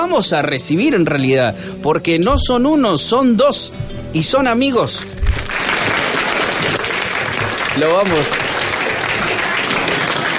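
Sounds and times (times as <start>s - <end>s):
speech: 0.0s - 6.0s, 7.8s - 8.5s
applause: 5.4s - 10.3s.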